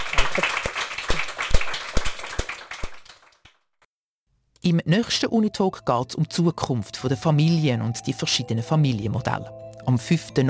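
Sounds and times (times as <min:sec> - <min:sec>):
audience applause: 0:00.0 - 0:03.4
speech: 0:00.4 - 0:00.7, 0:04.7 - 0:10.4.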